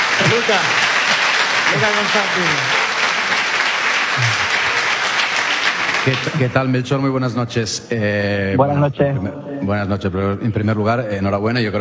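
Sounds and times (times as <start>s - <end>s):
applause from a radio programme audience: 0.0s - 6.9s
speech: 0.2s - 0.8s, 1.7s - 2.8s, 4.2s - 4.5s, 6.0s - 11.7s.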